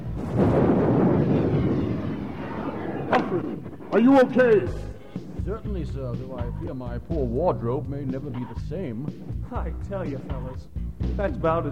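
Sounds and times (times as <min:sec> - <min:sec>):
Batmobile exploding after ignition was tampered with: 0:00.0 - 0:04.8
speech: 0:03.3 - 0:04.9, 0:05.5 - 0:11.7.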